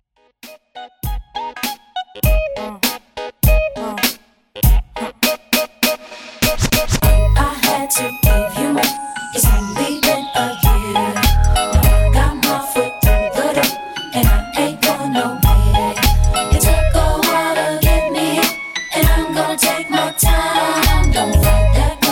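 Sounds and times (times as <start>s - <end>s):
music mix at 100 bpm: 0.3s - 22.1s.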